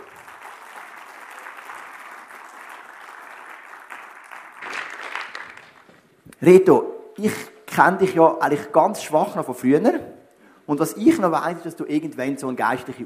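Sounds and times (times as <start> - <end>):
audience applause: 0.0 - 5.9
speech: 6.4 - 13.0.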